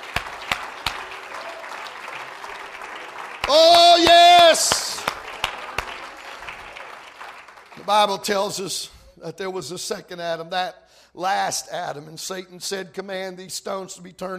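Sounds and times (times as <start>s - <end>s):
audience clapping hands: 0.0s - 8.7s
speech: 3.5s - 3.7s, 7.9s - 14.3s.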